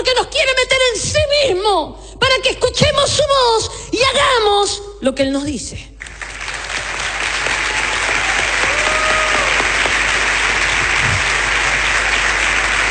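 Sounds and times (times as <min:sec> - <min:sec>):
speech: 0:00.1 - 0:05.9
audience applause: 0:06.0 - 0:12.8.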